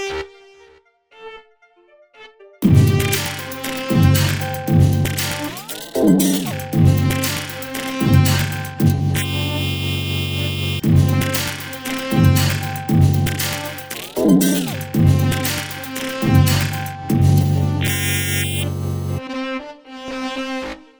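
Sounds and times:
arpeggio grooves: 2.7 - 19.2.

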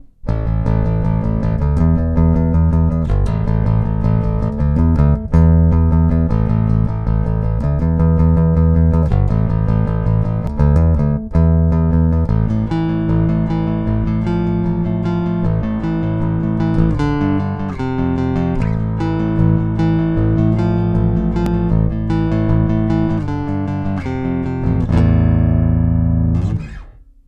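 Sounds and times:
guitar on neck pickup: 0.0 - 27.2.

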